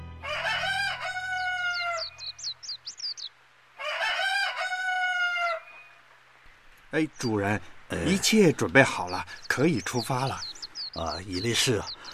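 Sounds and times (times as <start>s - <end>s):
rooster crowing at dawn: 0.2s - 2.3s, 3.8s - 5.8s
high thin bird chirps: 1.3s - 3.4s, 5.4s - 6.0s, 7.0s - 12.1s
speech: 6.9s - 12.0s.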